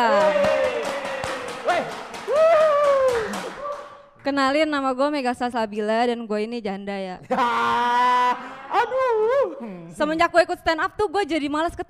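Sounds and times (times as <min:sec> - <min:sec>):
audience clapping: 0:00.0 - 0:04.4
speech: 0:04.3 - 0:11.8
laughter: 0:07.2 - 0:09.3.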